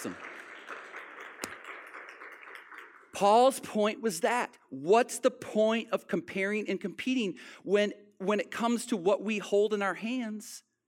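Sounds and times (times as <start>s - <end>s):
speech: 0.0s - 0.3s, 3.2s - 10.7s
audience applause: 0.0s - 3.2s.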